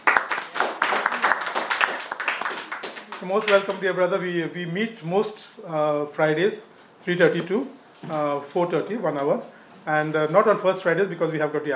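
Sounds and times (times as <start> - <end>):
prayer group clapping to welcome a new member: 0.0 - 4.0
speech: 3.2 - 11.7.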